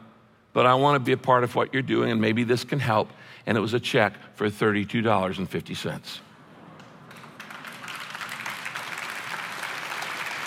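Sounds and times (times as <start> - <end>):
speech: 0.5 - 6.3
weak audience clapping: 6.8 - 10.4.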